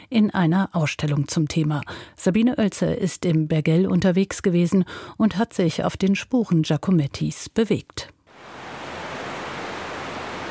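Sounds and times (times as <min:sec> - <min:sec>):
speech: 0:00.1 - 0:08.6
Maira river flowing down from the Maloja Pass through the Bergell valley: 0:08.3 - 0:10.5.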